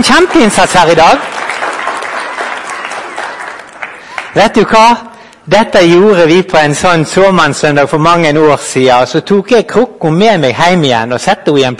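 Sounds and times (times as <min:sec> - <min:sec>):
speech: 0:00.0 - 0:01.4, 0:04.4 - 0:11.7
audience clapping: 0:00.0 - 0:05.4.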